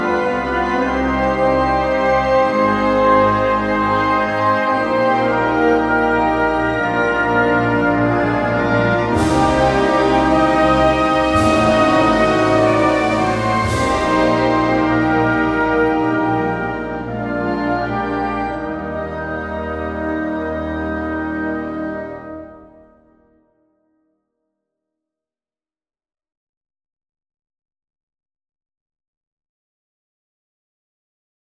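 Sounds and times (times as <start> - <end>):
national anthem: 0.0 - 22.9.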